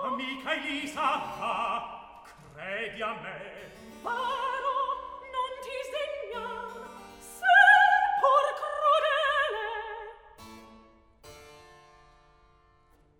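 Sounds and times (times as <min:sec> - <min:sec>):
recitative singing: 0:00.0 - 0:10.2.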